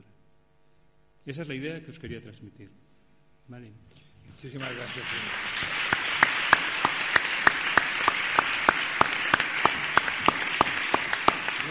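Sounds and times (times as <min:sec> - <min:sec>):
speech: 0:01.2 - 0:05.8
audience applause: 0:04.5 - 0:11.6.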